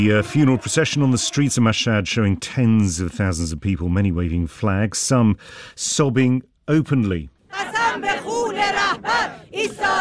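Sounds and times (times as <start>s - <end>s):
speech: 0.0s - 9.9s
women chanting slogans in unison at a funeral procession in Mashhad: 7.5s - 9.9s.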